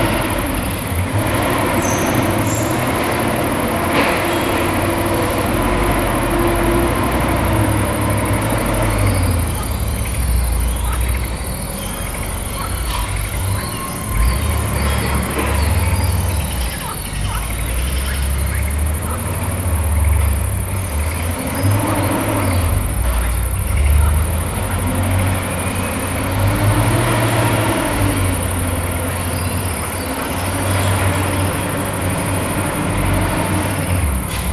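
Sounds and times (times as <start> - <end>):
forklifts: 0.0 - 34.5
frogs: 0.0 - 34.5.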